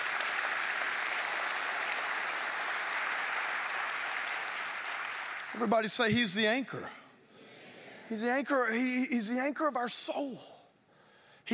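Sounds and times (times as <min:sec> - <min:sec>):
audience hand clapping: 0:00.0 - 0:06.2
speech: 0:05.6 - 0:07.0, 0:08.1 - 0:10.5.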